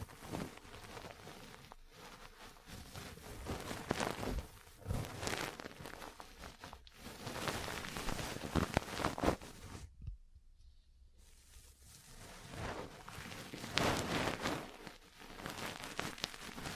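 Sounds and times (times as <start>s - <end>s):
ear cleaning and massage crackly rustling and scratching: 0.0s - 16.7s.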